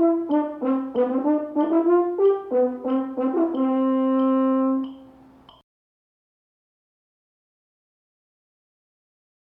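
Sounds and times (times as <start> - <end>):
horn dance music: 0.0 - 5.4.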